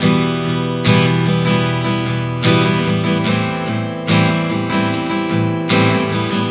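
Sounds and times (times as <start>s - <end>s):
acoustic guitar chord progression in E minor to A minor: 0.0s - 6.4s.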